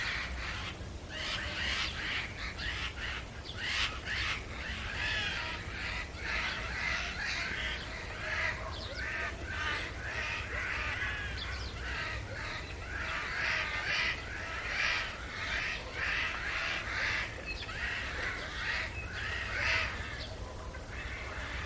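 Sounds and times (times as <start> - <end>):
Eurasian jay Garrulus glandarius rough scratchy calls: 0.0 - 21.6.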